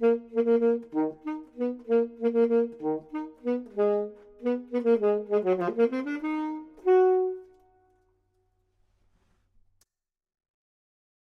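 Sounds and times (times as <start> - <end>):
clarinet: 0.0 - 8.1
saxophone: 0.0 - 8.1.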